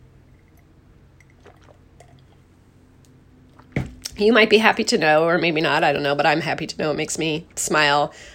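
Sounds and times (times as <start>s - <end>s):
person sipping coffee: 0.4s - 2.6s
speech: 4.2s - 8.3s.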